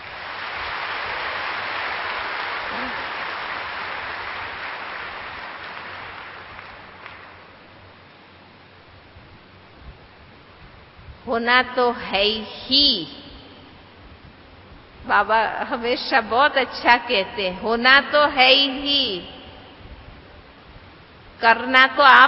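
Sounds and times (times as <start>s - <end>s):
audience clapping: 0.0s - 7.6s
speech: 11.3s - 13.2s, 15.1s - 19.3s, 21.4s - 22.2s.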